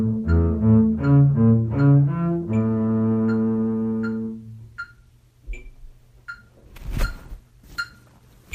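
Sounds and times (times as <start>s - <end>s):
bass playing a slow march at 80 BPM: 0.0s - 4.8s.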